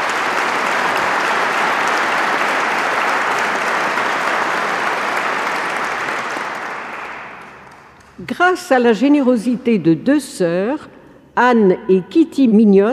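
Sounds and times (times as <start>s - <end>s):
audience applause: 0.0s - 8.2s
speech: 8.4s - 12.9s.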